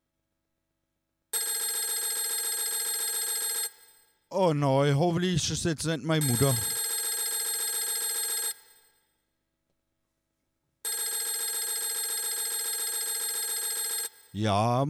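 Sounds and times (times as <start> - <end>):
telephone ringing: 1.4 - 3.8, 6.1 - 8.6, 10.9 - 14.8
speech: 4.3 - 6.8, 14.4 - 14.8.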